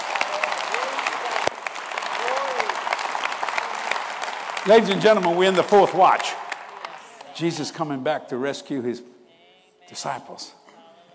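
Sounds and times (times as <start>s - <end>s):
audience applause: 0.0s - 7.8s
speech: 4.6s - 6.4s, 7.4s - 9.1s, 9.9s - 10.6s.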